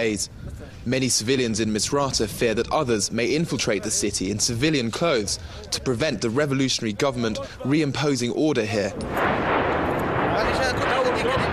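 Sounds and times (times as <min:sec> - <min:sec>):
speech: 0:00.0 - 0:09.6, 0:10.4 - 0:11.5
artillery shelling by government forces bombarding Misrata: 0:08.9 - 0:11.5.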